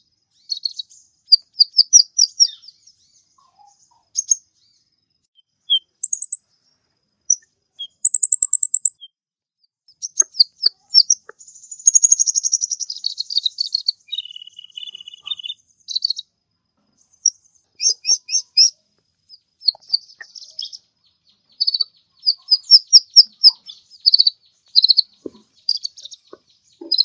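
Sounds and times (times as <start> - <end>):
mixed birds chirping and twittering: 0.0 - 9.1, 9.9 - 27.0.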